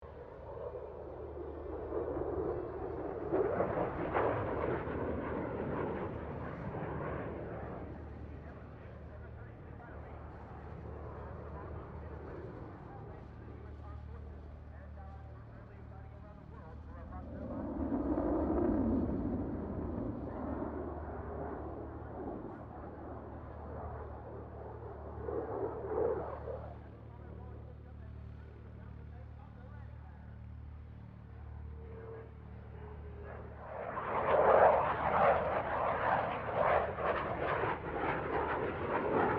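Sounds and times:
F-16 Falcon aircraft passing: 0.0 - 12.9, 17.0 - 27.6, 31.9 - 39.3.

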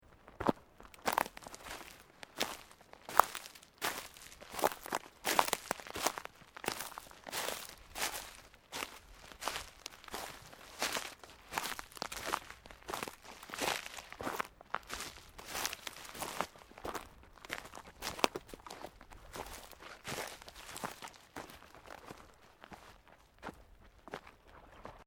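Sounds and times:
boot footsteps in underbrush: 0.4 - 25.0.

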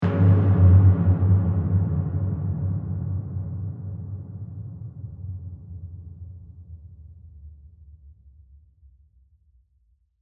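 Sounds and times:
deep drum hit: 0.0 - 5.1.

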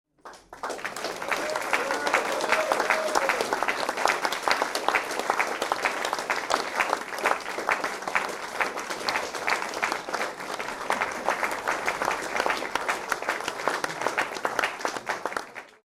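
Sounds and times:
small indoor crowd applauding: 0.2 - 15.8.

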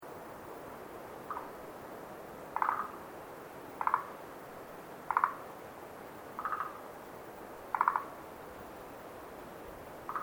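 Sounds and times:
frogs croaking at night at Lake Tazawa: 1.3 - 1.6, 2.5 - 3.1, 3.7 - 4.2, 5.0 - 5.6, 6.4 - 6.9, 7.6 - 8.2, 10.0 - 10.2.

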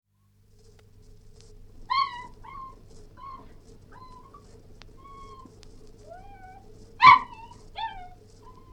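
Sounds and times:
Cairn terrier whining: 1.9 - 8.7.

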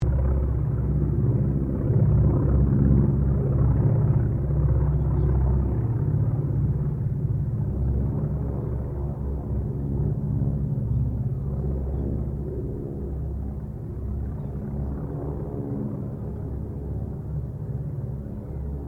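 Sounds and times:
distant CAC Wackett Winjeel and Wirraway aircraft passing: 0.0 - 18.8.

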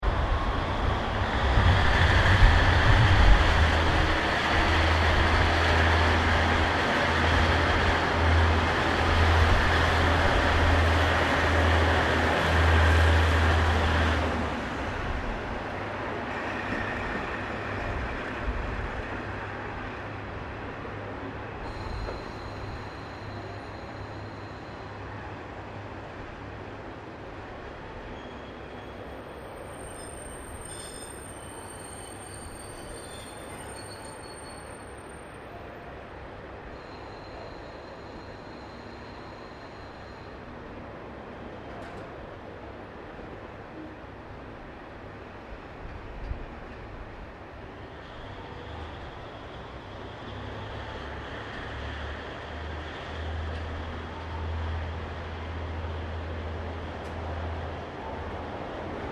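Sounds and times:
Aomori DC40 passenger diesel train passing in Japan: 0.0 - 59.0.

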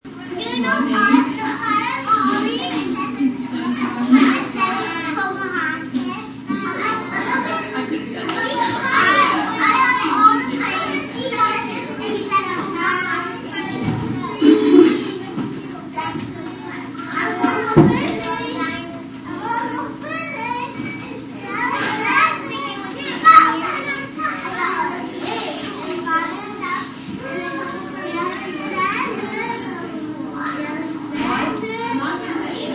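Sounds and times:
preschool ambience: 0.0 - 32.7.

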